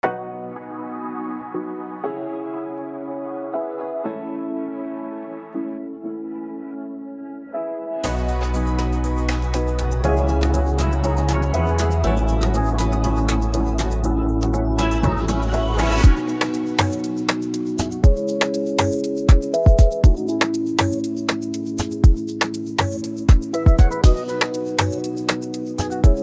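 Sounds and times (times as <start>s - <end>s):
music beat: 8.0s - 26.2s.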